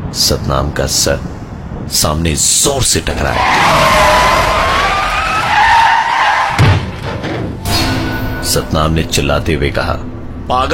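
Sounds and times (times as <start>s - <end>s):
speech: 0.1s - 5.0s, 8.4s - 10.7s
truck tires skidding: 3.1s - 7.5s
truck brakes slamming: 3.3s - 6.6s.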